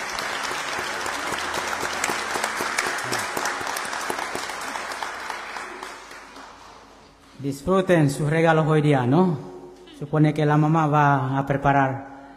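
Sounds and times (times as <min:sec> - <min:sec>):
applause: 0:00.0 - 0:07.0
speech: 0:07.4 - 0:12.1.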